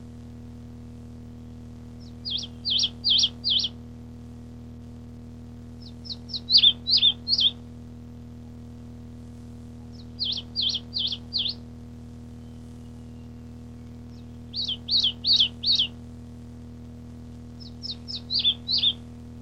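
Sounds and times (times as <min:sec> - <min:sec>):
birdsong: 0:02.0 - 0:03.7, 0:05.8 - 0:07.6, 0:09.9 - 0:11.6, 0:12.3 - 0:16.0, 0:17.6 - 0:19.0.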